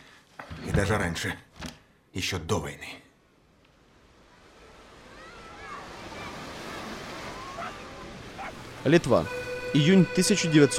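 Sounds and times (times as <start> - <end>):
speech: 0.8 - 1.5, 2.1 - 3.0, 8.8 - 10.7
sea waves washing onto a sandy beach in Lithuania: 3.8 - 9.4.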